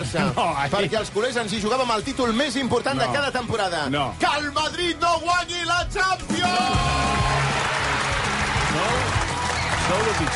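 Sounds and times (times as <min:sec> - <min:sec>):
speech: 0:00.0 - 0:07.5, 0:09.9 - 0:10.3
applause: 0:07.0 - 0:10.3.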